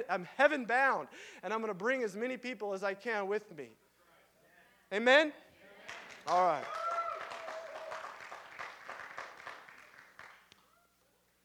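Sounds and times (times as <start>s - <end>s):
speech: 0.1s - 3.8s, 4.9s - 6.8s
crowd clapping: 5.8s - 10.7s
people whooping: 6.6s - 8.4s.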